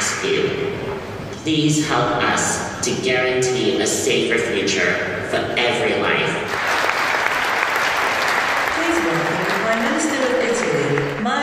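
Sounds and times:
speech: 0.2s - 0.8s, 1.4s - 6.6s
large crowd applauding after a speech: 6.5s - 11.3s.

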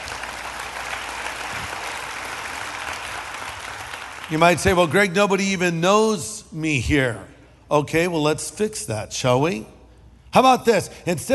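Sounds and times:
crowd applauding: 0.0s - 4.9s
speech: 4.3s - 11.3s.

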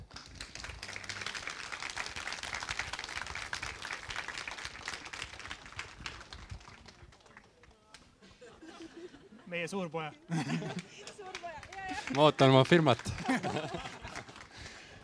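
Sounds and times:
audience applause: 0.0s - 7.6s, 10.7s - 15.0s
laughter: 8.2s - 14.8s
speech: 9.5s - 11.1s, 12.1s - 14.0s.

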